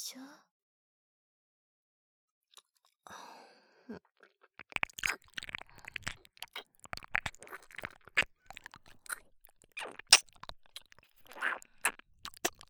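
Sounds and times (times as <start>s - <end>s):
gentle ear licking: 4.0s - 12.6s
melting kisses: 9.8s - 12.6s.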